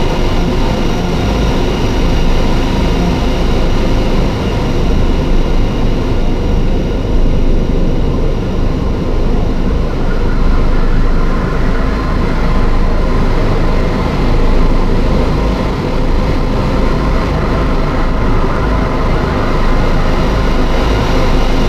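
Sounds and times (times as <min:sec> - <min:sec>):
drone: 0:00.0 - 0:21.6.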